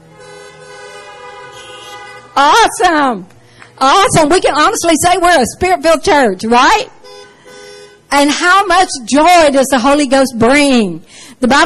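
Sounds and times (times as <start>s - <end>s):
several car horns honking together: 0.0s - 3.0s, 6.8s - 8.4s
speech: 2.4s - 7.0s, 8.1s - 11.6s.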